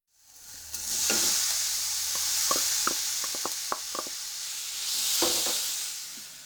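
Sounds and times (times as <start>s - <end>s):
minced meat and chopped ginger sizzling as stir-fried: 0.2s - 6.4s
wooden spatula scraping knocks: 1.0s - 4.2s.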